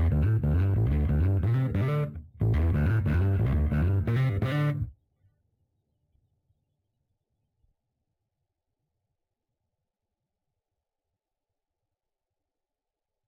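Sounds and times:
rhythm: 0.0 - 4.9.

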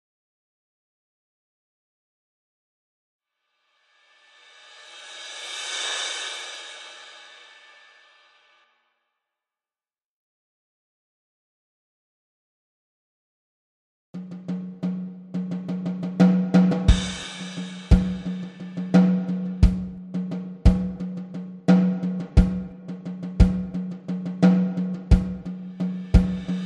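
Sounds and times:
drums: 4.4 - 8.4, 14.2 - 26.6.

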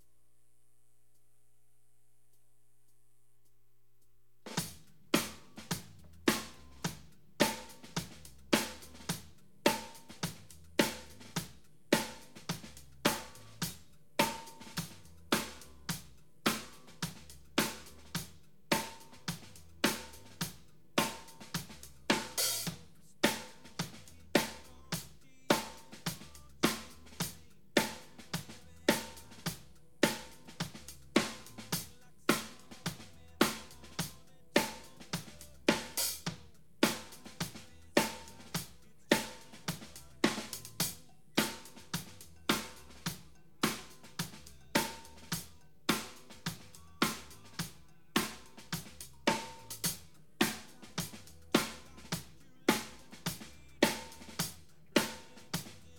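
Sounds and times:
drums: 4.4 - 55.9.

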